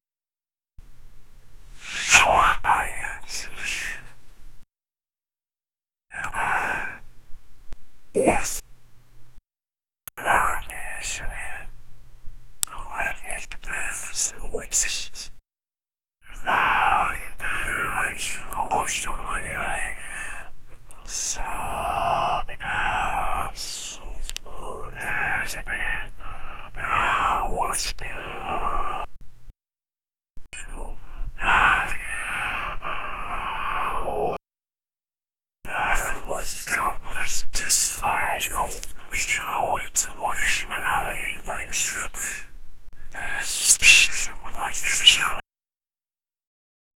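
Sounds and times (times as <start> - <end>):
faint unholy whispers: 1.7 - 4.2, 6.1 - 7.0, 8.2 - 8.6, 10.2 - 11.8, 12.7 - 15.3, 16.3 - 29.1, 30.5 - 34.4, 35.7 - 45.4.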